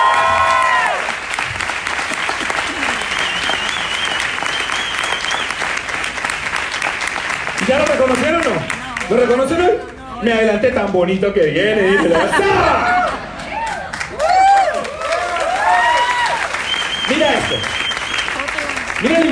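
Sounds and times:
whoops and cheers: 0.0s - 1.2s, 12.6s - 18.6s
audience applause: 0.0s - 9.6s, 12.5s - 19.2s
laughter: 2.3s - 3.7s, 11.7s - 13.6s
speech: 9.1s - 13.0s.

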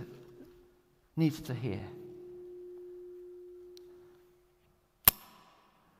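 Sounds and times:
speech: 1.2s - 2.0s
carabiner clipping shut: 5.1s - 5.7s.

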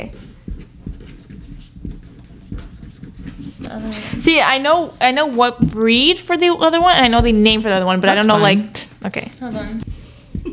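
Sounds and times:
speech: 0.0s - 0.3s, 3.7s - 9.9s
pen or pencil scratching on paper writing answers: 0.0s - 3.7s.

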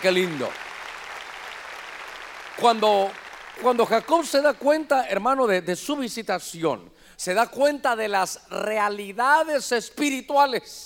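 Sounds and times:
speech: 0.0s - 0.7s, 2.6s - 10.8s
audience clapping loudly: 0.0s - 4.8s.

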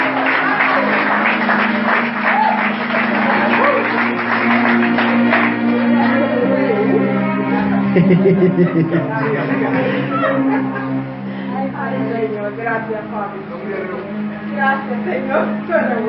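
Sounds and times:
audience applause: 0.0s - 11.0s
laughter: 0.0s - 11.6s
scattered voices: 0.0s - 16.0s
sustained low musical tone: 0.0s - 16.0s
speech: 8.0s - 10.9s, 11.9s - 16.0s.

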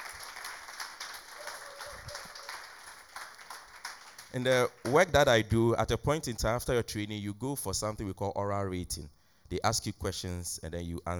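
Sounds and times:
audience clapping: 0.0s - 5.1s
speech: 4.4s - 11.1s.

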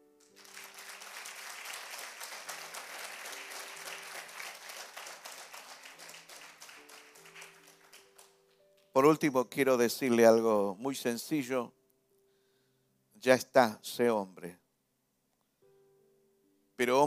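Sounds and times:
crowd applauding: 0.2s - 8.4s
speech: 9.0s - 11.8s, 13.2s - 14.6s, 16.8s - 17.0s.

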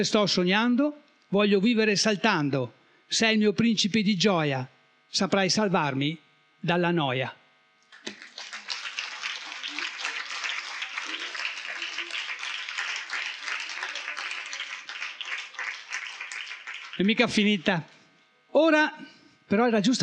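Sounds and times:
speech: 0.0s - 7.4s, 17.0s - 17.9s, 18.5s - 20.0s
applause: 7.9s - 17.8s.

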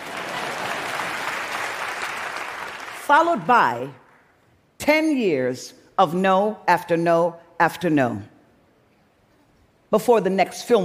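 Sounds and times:
audience clapping: 0.0s - 3.4s
speech: 3.1s - 4.0s, 4.8s - 8.3s, 9.9s - 10.8s.

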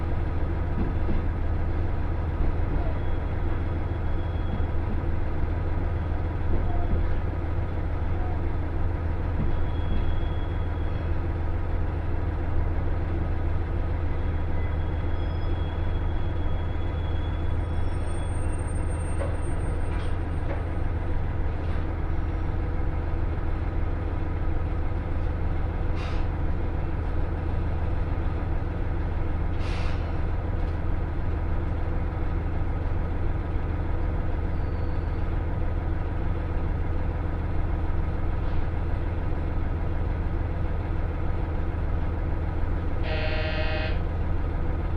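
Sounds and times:
local train engine on the Yamada Line droning: 0.0s - 44.9s.

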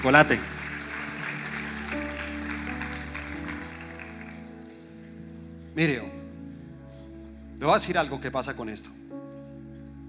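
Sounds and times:
speech: 0.0s - 0.6s, 5.8s - 6.2s, 7.6s - 9.0s
audience applause: 0.0s - 4.8s.

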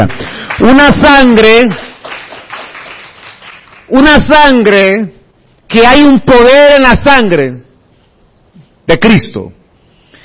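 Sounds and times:
speech: 0.0s - 1.9s, 3.9s - 7.6s, 8.9s - 9.6s
audience clapping: 0.0s - 4.3s.

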